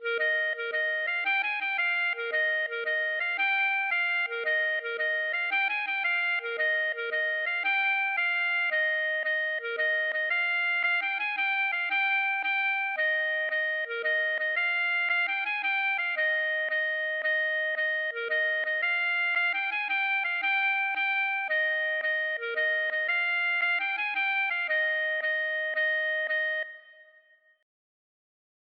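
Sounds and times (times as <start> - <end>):
Breton gavotte dance tune from Le Conquet: 0.0 - 26.8.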